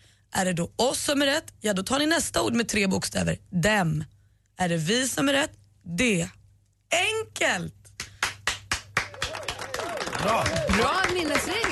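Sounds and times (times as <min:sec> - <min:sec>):
speech: 0:00.4 - 0:07.8, 0:10.2 - 0:11.6
one person applauding: 0:08.0 - 0:11.6.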